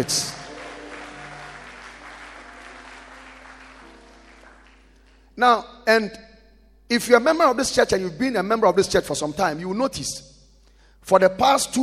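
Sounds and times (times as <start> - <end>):
speech: 0.0 - 0.4, 5.4 - 6.3, 6.9 - 10.3, 11.0 - 11.8
audience clapping: 0.0 - 5.4.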